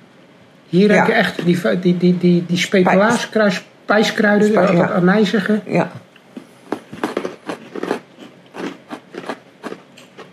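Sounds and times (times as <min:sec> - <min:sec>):
speech: 0:00.7 - 0:06.0
crisp kruidnoten spiced cookie bites being bitten and chewed: 0:06.6 - 0:10.3.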